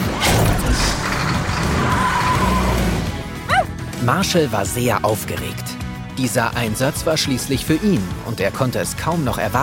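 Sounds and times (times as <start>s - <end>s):
recycling truck engine roaring away: 0.1s - 3.8s
speech: 4.1s - 9.6s.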